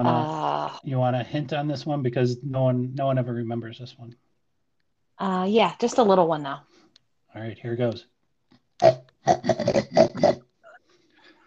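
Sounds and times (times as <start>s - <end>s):
speech: 0.0s - 4.2s, 5.2s - 6.7s, 7.3s - 8.1s, 8.8s - 10.4s
voice imitating a hognose skunk with grunting snorts: 8.8s - 10.4s.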